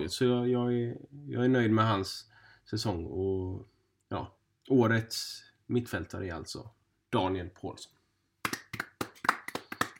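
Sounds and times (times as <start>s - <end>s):
speech: 0.0s - 8.0s
sparse dry applause: 8.4s - 9.9s.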